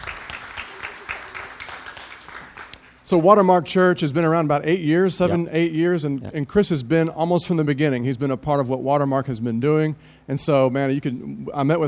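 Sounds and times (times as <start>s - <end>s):
audience in a church applauding to welcome guests: 0.0s - 3.0s
speech: 3.1s - 11.8s.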